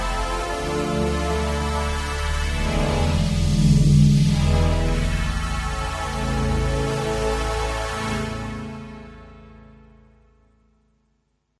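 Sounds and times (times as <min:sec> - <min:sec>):
filter phaser effect: 0:00.0 - 0:08.7.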